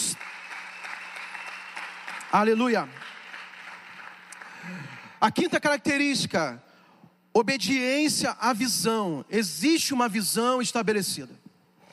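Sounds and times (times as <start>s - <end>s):
audience applauding: 0.0s - 5.2s
speech: 2.3s - 3.0s, 4.6s - 6.7s, 7.4s - 11.4s.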